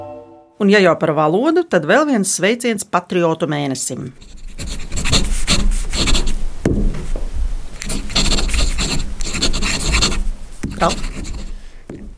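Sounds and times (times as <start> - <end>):
speech: 0.6 - 4.9, 10.8 - 11.1
pen writing on paper: 4.2 - 6.4, 7.8 - 12.1.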